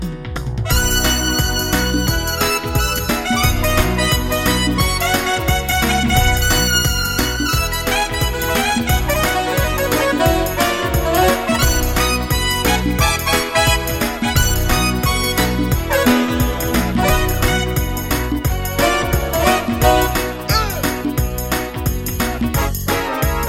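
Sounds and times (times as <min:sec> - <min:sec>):
mambo music: 0:00.0 - 0:23.4.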